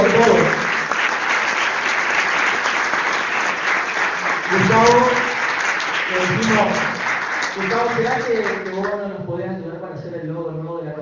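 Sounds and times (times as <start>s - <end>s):
audience applause for an industrial designer and artist: 0.0s - 8.9s
speech: 7.6s - 11.0s.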